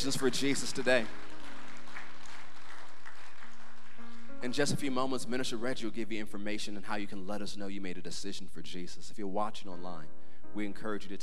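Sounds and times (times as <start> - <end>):
speech: 0.0 - 1.3, 4.4 - 11.2
congregation cheering and applause: 0.1 - 4.7.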